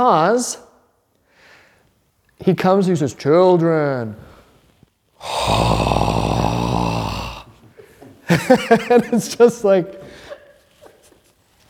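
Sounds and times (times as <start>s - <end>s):
speech: 0.0s - 0.6s, 2.4s - 4.3s, 5.2s - 6.4s, 8.3s - 10.0s
man imitating Aslan breathing heavily: 5.2s - 7.6s
laughter: 8.3s - 9.4s.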